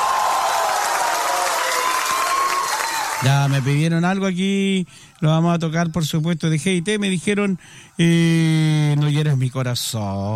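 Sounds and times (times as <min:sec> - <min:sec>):
audience clapping: 0:00.0 - 0:03.8
speech: 0:03.2 - 0:10.3.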